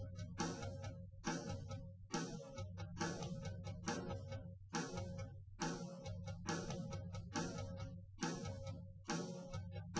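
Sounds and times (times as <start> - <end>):
live recorded drums: 0.0 - 9.9.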